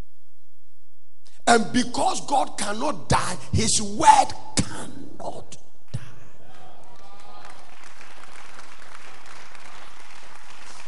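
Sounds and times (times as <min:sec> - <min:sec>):
speech: 0:01.5 - 0:05.6
audience clapping: 0:06.4 - 0:10.8.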